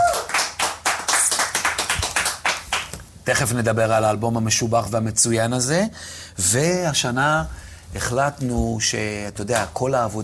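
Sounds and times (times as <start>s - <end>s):
audience clapping steadily and rhythmically: 0.0s - 3.1s
speech: 3.2s - 10.2s.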